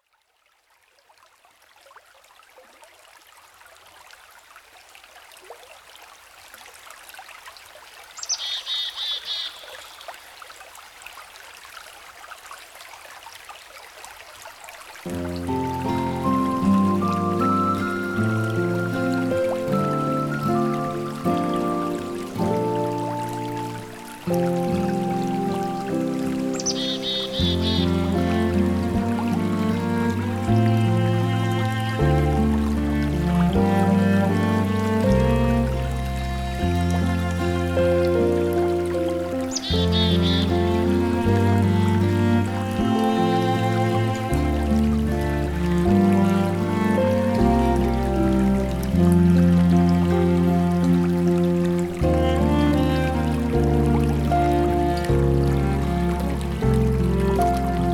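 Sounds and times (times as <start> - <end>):
cello: 15.0 - 57.9.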